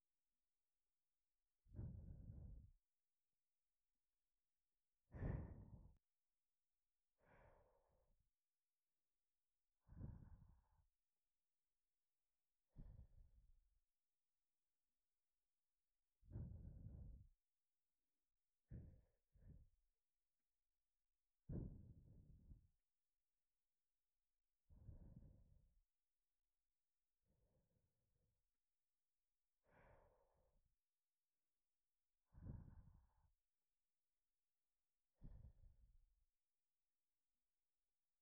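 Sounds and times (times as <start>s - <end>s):
breathing: 1.7s - 3.0s, 5.0s - 6.2s, 7.1s - 8.4s, 9.8s - 11.0s, 12.6s - 13.7s, 16.2s - 17.6s, 18.6s - 19.9s, 21.4s - 22.8s, 24.7s - 25.9s, 29.6s - 30.9s, 32.2s - 33.6s, 35.1s - 36.2s
sleep breathing: 1.8s - 2.7s, 5.1s - 6.0s, 9.8s - 10.7s, 16.3s - 17.3s, 32.3s - 33.1s.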